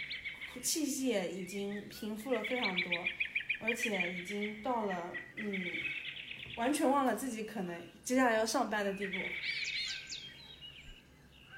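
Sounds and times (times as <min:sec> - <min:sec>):
birds calling by West Lake: 0:00.0 - 0:11.5
speech: 0:00.5 - 0:06.0, 0:06.6 - 0:09.6.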